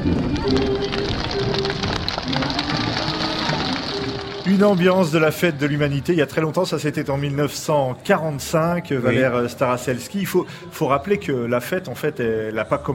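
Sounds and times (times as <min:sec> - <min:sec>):
crowd cheering: 0:00.2 - 0:06.1
speech: 0:04.6 - 0:12.9.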